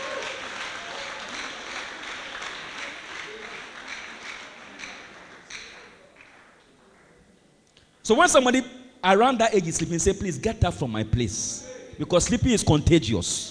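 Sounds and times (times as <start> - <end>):
audience clapping: 0.0 - 7.2
speech: 8.1 - 13.5.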